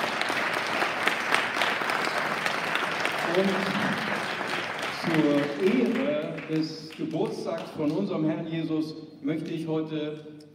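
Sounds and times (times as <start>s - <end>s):
audience applause: 0.0s - 8.0s
speech: 3.4s - 4.4s, 5.0s - 10.4s.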